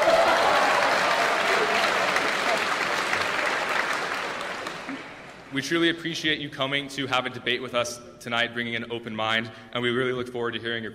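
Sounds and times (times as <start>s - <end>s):
large audience clapping: 0.0s - 5.5s
speech: 5.5s - 10.9s.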